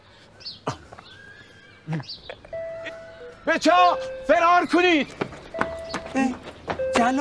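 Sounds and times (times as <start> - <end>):
speech: 1.9 - 2.3, 3.4 - 5.2, 7.0 - 7.1
doorbell rung at a house door: 2.6 - 2.9, 5.5 - 6.2, 6.8 - 7.1.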